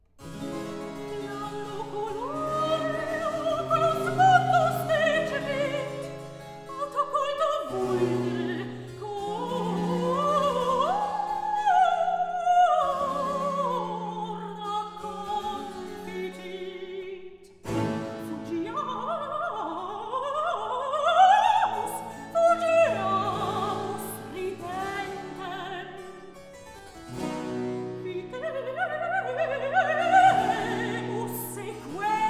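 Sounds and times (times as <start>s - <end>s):
recitative singing: 0.4s - 26.4s, 27.1s - 32.2s.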